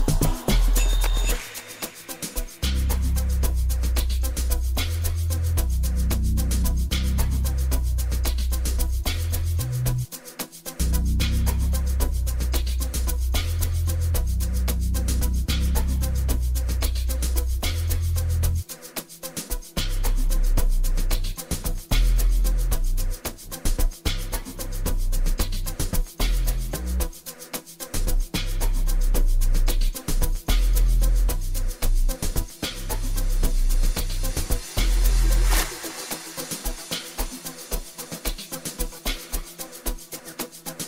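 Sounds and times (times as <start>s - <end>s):
bass: 0.0s - 1.4s, 2.4s - 18.8s, 19.5s - 27.2s, 28.0s - 35.7s
bells: 0.1s - 2.3s.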